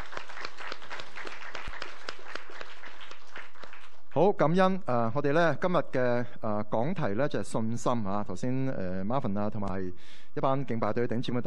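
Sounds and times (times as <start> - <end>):
audience applause: 0.0 - 4.2
speech: 4.2 - 11.4.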